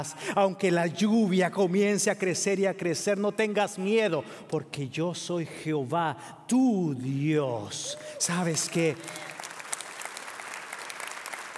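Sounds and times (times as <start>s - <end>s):
speech: 0.0s - 9.3s
church congregation clapping during a worship service at the new year: 7.8s - 11.5s.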